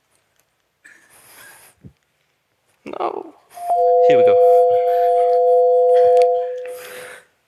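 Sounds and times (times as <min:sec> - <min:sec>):
speech: 0:02.9 - 0:04.4
simulated pulsar sine wave signal: 0:03.6 - 0:07.1.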